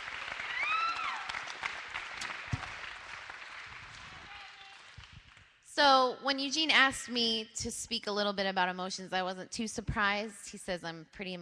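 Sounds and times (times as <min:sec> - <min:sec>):
round of applause: 0:00.0 - 0:05.5
speech: 0:05.8 - 0:11.3.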